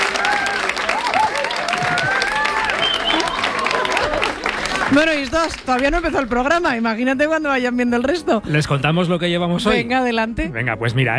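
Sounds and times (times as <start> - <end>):
studio audience applause: 0.0 - 6.2
speech: 4.9 - 11.1.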